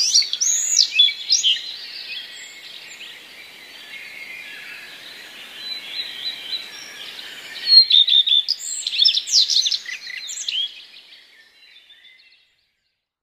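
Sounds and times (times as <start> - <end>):
redstart singing before sunrise: 0.0 - 12.3.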